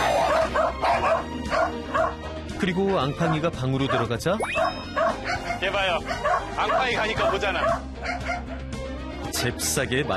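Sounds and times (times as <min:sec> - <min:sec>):
puppy barking: 0:00.0 - 0:02.2, 0:03.2 - 0:08.6
speech: 0:02.6 - 0:08.3, 0:09.4 - 0:10.1.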